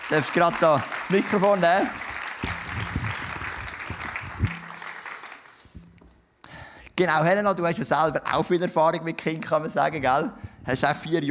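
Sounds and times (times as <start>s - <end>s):
audience applauding: 0.0s - 5.8s
speech: 0.1s - 2.9s, 7.0s - 11.3s
low thumps: 2.4s - 5.0s, 5.8s - 6.2s.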